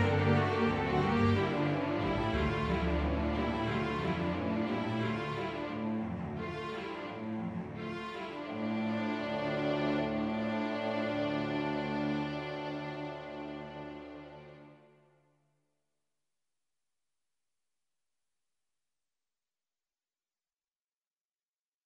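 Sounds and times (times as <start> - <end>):
polka music: 0.0 - 13.1.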